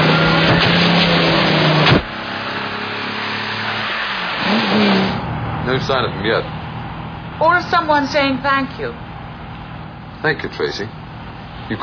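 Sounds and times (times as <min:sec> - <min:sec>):
car engine roaring as it drives off: 0:00.0 - 0:11.8
speech: 0:05.8 - 0:06.6, 0:07.4 - 0:09.0, 0:10.2 - 0:11.0, 0:11.7 - 0:11.8.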